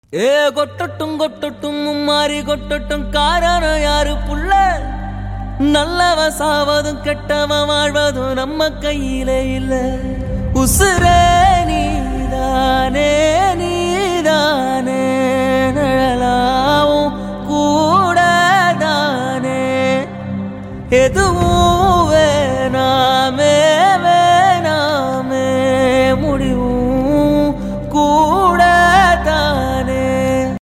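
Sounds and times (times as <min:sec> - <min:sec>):
short Tamil cover song: 0:00.1 - 0:30.6.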